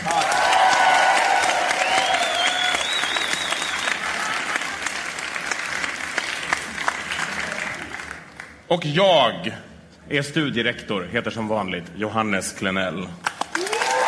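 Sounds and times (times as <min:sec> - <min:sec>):
warm applause from audience: 0:00.0 - 0:08.6, 0:13.3 - 0:14.0
speech: 0:08.7 - 0:13.2.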